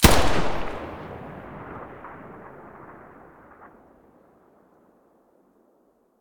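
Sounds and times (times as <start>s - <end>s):
FN2000 rifle muzzle blast: 0.0s - 3.9s.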